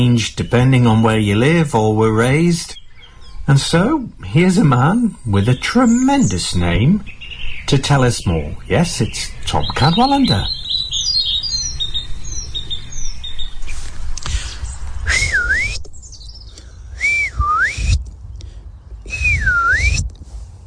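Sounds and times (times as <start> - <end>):
speech: 0.0 - 2.8, 3.5 - 10.6
faint bird chirps: 2.2 - 19.8
man whistling an imitation of a lapwing call: 15.0 - 15.9, 16.9 - 18.0, 19.0 - 20.1.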